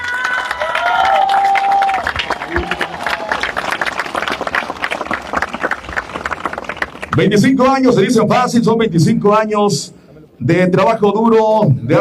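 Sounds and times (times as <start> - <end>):
cheers and whoops: 0.0 - 4.7
audience giving loud applause: 0.0 - 7.4
speech: 7.2 - 12.0.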